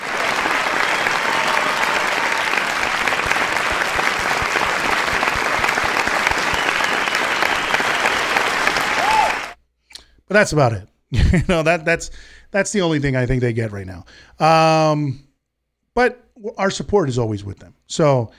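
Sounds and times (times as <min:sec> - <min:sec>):
round of applause: 0:00.0 - 0:09.6
speech: 0:10.3 - 0:15.2, 0:16.0 - 0:18.3.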